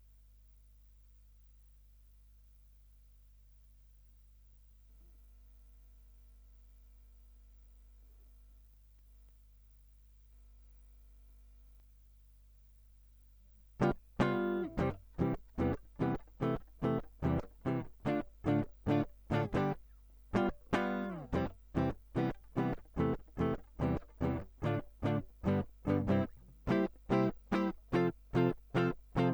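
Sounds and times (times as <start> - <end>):
guitar line: 13.8 - 29.3.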